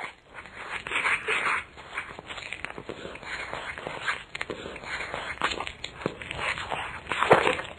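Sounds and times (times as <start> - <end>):
person munching on an apple: 0.0 - 7.7.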